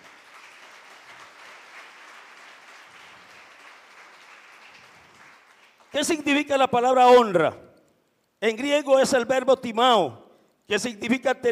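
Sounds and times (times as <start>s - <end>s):
audience applauding: 0.0s - 6.1s
speech: 5.9s - 7.6s, 8.4s - 11.4s.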